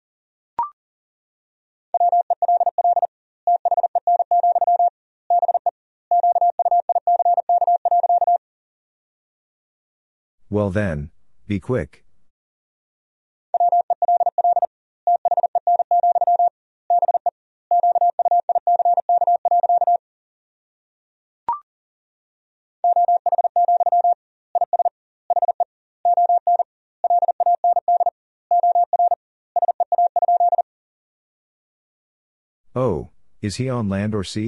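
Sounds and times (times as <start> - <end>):
Morse code sentence at 40 wpm: 2.0 - 8.4, 13.6 - 20.0, 22.8 - 30.6
speech: 10.5 - 12.0, 33.5 - 34.4.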